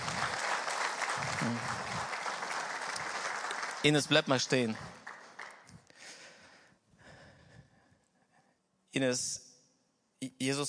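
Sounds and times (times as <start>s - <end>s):
audience applause: 0.0s - 5.8s
speech: 1.4s - 1.8s, 3.8s - 4.9s, 9.0s - 9.4s, 10.2s - 10.6s.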